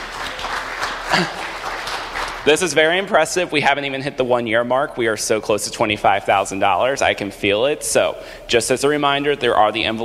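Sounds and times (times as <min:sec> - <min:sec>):
church congregation applause at the end of a service: 0:00.0 - 0:03.2
speech: 0:01.1 - 0:01.4, 0:02.4 - 0:10.0.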